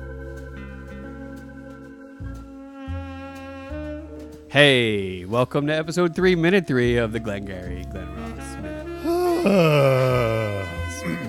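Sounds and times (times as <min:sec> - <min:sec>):
speech: 0:04.5 - 0:08.2, 0:09.4 - 0:10.3
man clearing his throat: 0:09.0 - 0:11.2.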